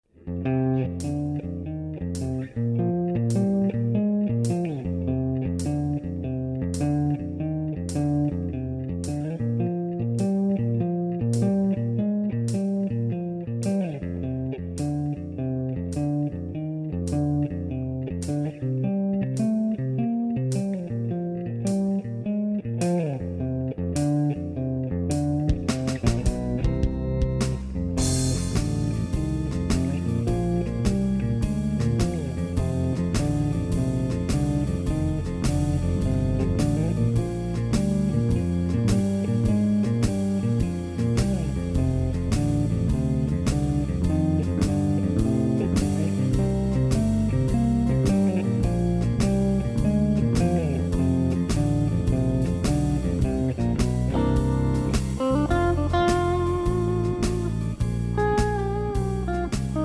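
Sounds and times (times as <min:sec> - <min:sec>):
honky tonk music: 0:00.1 - 0:59.8.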